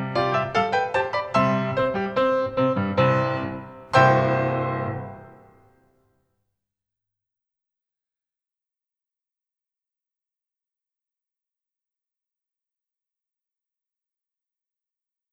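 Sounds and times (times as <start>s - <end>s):
pas de bourrée dance steps: 0.0s - 5.4s.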